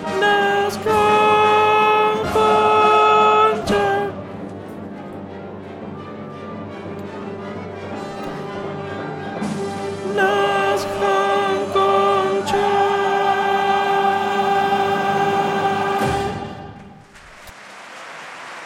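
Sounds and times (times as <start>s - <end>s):
alto voices singing an opera repertoire dance piece: 0.0s - 4.6s, 9.8s - 17.0s.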